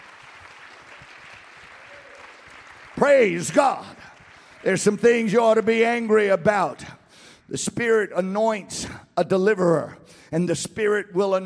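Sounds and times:
church congregation clapping during worship: 0:00.0 - 0:06.8
speech: 0:03.0 - 0:04.0, 0:04.6 - 0:06.9, 0:07.5 - 0:11.4.

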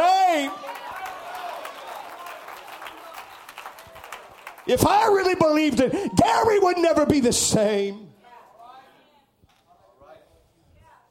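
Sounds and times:
crowd clapping: 0:00.0 - 0:05.8
speech: 0:04.7 - 0:08.0.

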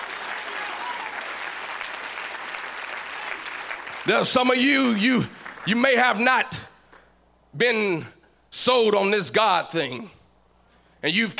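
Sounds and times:
audience clapping hands: 0:00.0 - 0:06.2
speech: 0:04.0 - 0:06.7, 0:07.6 - 0:10.2, 0:11.0 - 0:11.3.

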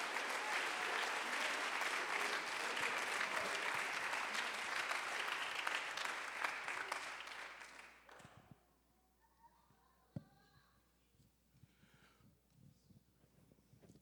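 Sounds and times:
crowd applause: 0:00.0 - 0:08.2.

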